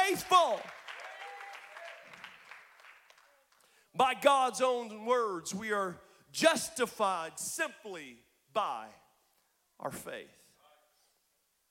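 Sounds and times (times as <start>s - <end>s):
audience clapping hands: 0.0s - 3.8s
speech: 0.2s - 0.8s, 4.0s - 9.0s, 9.8s - 10.4s
faint cheers: 1.0s - 2.2s.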